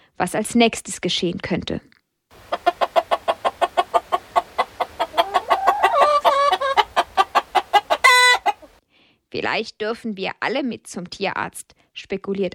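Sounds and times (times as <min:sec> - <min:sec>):
speech: 0:00.2 - 0:01.9, 0:09.4 - 0:12.5
hens and roosters clucking together: 0:02.4 - 0:08.8
loud chicken squawk: 0:02.4 - 0:08.8.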